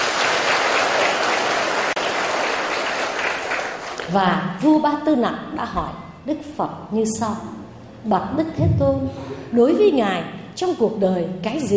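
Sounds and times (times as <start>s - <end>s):
round of applause: 0.0s - 4.1s
speech: 4.1s - 11.7s.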